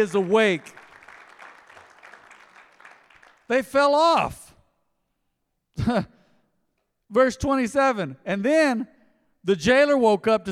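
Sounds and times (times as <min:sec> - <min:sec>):
speech: 0:00.0 - 0:00.8, 0:03.5 - 0:04.4, 0:05.8 - 0:06.2, 0:07.1 - 0:10.5
people clapping: 0:00.0 - 0:03.8.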